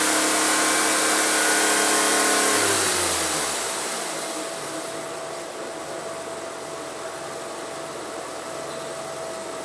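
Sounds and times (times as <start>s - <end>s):
Smart Roadster Coupe Brabus engine: 0.0s - 9.6s.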